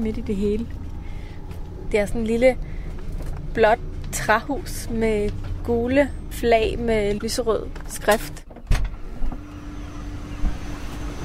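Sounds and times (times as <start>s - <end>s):
speech: 0.0s - 0.8s, 1.9s - 2.7s, 3.6s - 8.4s
truck noise: 0.0s - 11.2s.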